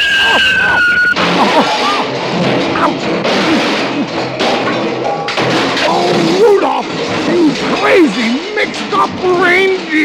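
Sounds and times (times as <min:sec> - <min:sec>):
high squealing whistle of a sleigh: 0:00.0 - 0:01.2
rattling, clattering and tumbling debris: 0:00.3 - 0:10.0
speech: 0:00.4 - 0:03.4, 0:07.9 - 0:10.0.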